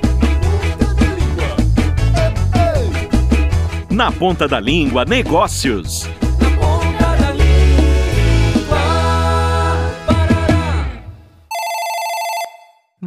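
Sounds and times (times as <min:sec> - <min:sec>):
upbeat music with a strong beat: 0:00.0 - 0:11.2
speech: 0:04.0 - 0:06.2
loud electronic telephone ring: 0:11.5 - 0:12.9.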